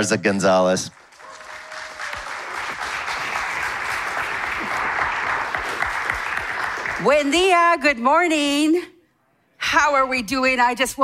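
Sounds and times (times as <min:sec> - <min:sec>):
speech: 0:00.0 - 0:01.0, 0:07.0 - 0:08.9, 0:09.7 - 0:11.0
church congregation applause welcoming a guest speaker: 0:00.8 - 0:07.5.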